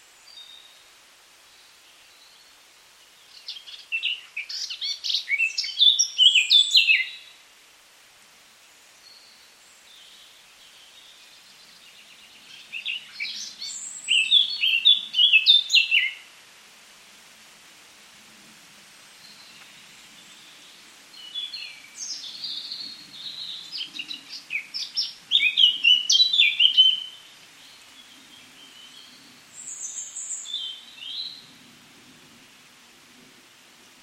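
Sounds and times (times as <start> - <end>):
Eurasian Blackcap warbling song: 3.4 - 7.2, 12.4 - 16.2, 21.1 - 27.8.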